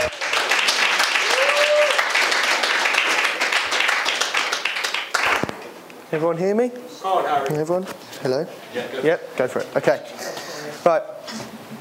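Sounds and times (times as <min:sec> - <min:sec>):
audience applause welcoming a speaker: 0:00.0 - 0:05.6
speech: 0:06.1 - 0:11.7.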